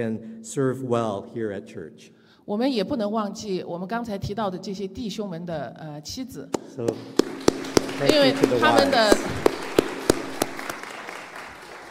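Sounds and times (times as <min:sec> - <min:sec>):
speech: 0:00.0 - 0:09.6
audience applause: 0:06.9 - 0:11.8.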